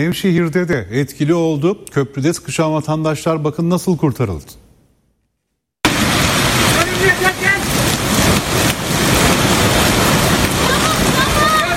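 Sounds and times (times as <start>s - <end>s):
speech: 0.0s - 4.6s
flash flood water rushing through Ürgüp in Nevşehir: 5.9s - 11.7s.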